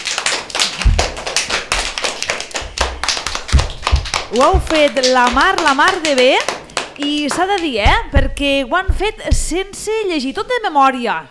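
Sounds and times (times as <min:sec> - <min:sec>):
small audience clapping after a children's story performance: 0:00.0 - 0:07.9
speech: 0:04.3 - 0:11.3.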